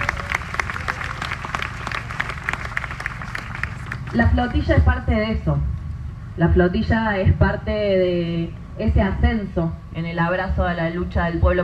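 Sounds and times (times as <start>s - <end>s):
audience applause: 0.0s - 4.2s
speech: 4.1s - 5.7s, 6.4s - 11.6s.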